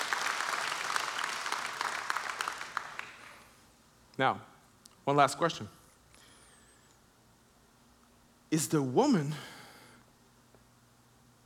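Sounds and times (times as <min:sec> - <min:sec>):
audience clapping: 0:00.0 - 0:03.6
speech: 0:04.2 - 0:05.8, 0:08.5 - 0:09.5.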